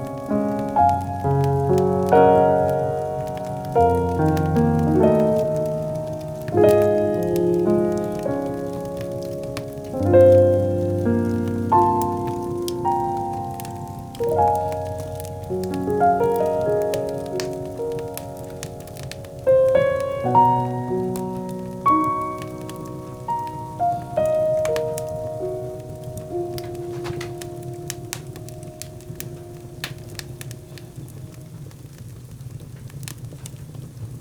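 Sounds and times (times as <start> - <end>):
bonfire burning: 0.0 - 34.1
rain: 0.0 - 34.1.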